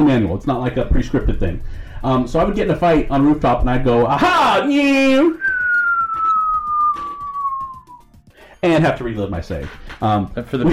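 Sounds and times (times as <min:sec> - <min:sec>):
speech: 0:00.0 - 0:05.5, 0:08.6 - 0:10.7
voice imitating a falling whistle: 0:05.4 - 0:08.0.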